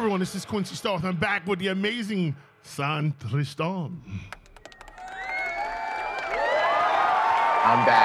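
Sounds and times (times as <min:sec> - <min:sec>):
speech: 0:00.2 - 0:04.4, 0:07.7 - 0:08.0
loud crowd cheering: 0:04.6 - 0:08.0.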